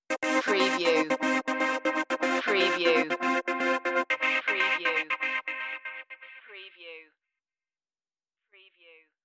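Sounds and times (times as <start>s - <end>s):
virus stinger: 0.1s - 6.4s.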